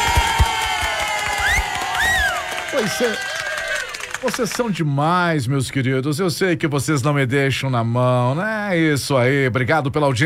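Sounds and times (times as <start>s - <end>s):
rising whistles or whoops: 0.0s - 4.0s
audience applauding and cheering a prize winner on a radio program: 0.0s - 4.9s
speech: 2.8s - 3.3s, 4.2s - 10.2s.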